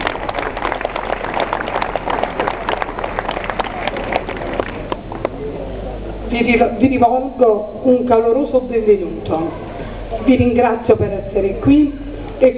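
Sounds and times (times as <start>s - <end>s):
applause from a piazza crowd: 0.0s - 6.0s
speech: 6.3s - 12.5s.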